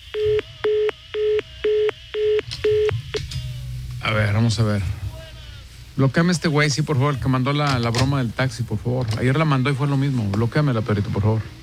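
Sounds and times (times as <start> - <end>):
telephone beeps on a phone that is not working: 0.1 - 3.3
speech: 4.1 - 5.0, 6.0 - 11.6.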